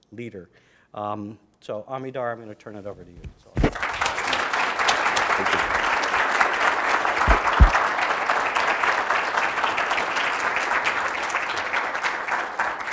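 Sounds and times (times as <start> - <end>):
speech: 0.1 - 3.6, 5.4 - 5.8
audience clapping: 3.6 - 12.9.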